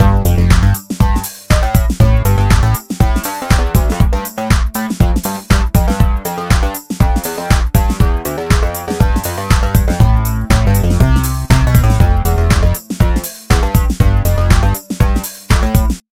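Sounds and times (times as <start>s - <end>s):
music beat: 0.0s - 16.0s.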